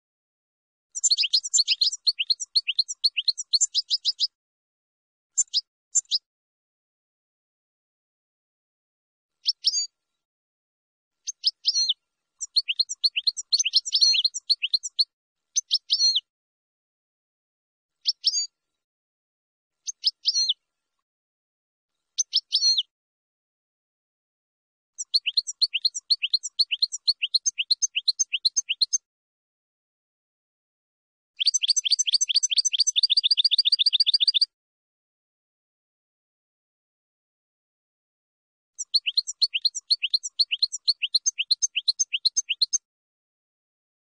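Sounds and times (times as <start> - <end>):
finch song: 0.9 - 4.4, 5.3 - 6.3, 9.3 - 10.2, 11.2 - 16.3, 17.9 - 18.7, 19.8 - 21.0, 22.0 - 22.9, 25.0 - 29.1, 31.4 - 34.5, 38.8 - 42.9.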